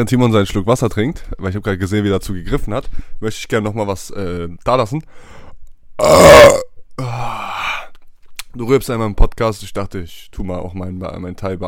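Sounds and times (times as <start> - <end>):
speech: 0.0 - 5.4, 6.0 - 7.5, 8.6 - 11.6
loud burp: 6.0 - 7.6.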